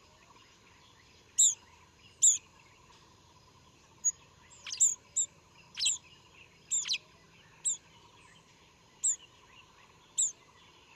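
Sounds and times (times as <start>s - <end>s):
olive-backed pipit calling at Yushan in Taiwan: 1.4s - 1.6s, 4.6s - 6.0s, 6.7s - 7.0s, 10.2s - 10.4s.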